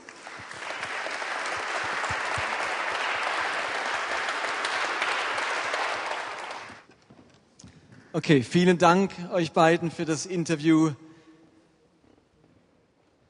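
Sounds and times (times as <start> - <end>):
audience applause: 0.0 - 6.8
speech: 8.2 - 11.0.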